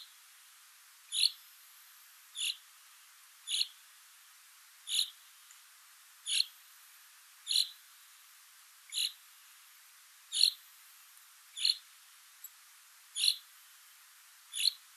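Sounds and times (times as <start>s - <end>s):
common chaffinch Fringilla coelebs calling: 1.1s - 1.4s, 2.4s - 2.6s, 3.5s - 3.8s, 4.9s - 5.2s, 6.2s - 6.6s, 7.4s - 7.8s, 8.9s - 9.2s, 10.3s - 10.6s, 11.5s - 11.9s, 13.2s - 13.5s, 14.5s - 14.8s.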